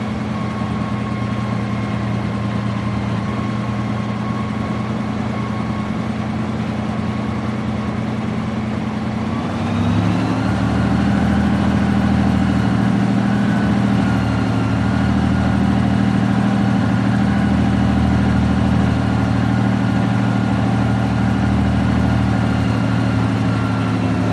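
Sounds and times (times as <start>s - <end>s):
1939 Matilda Mark 2 tank driving across a field: 0.0s - 24.3s.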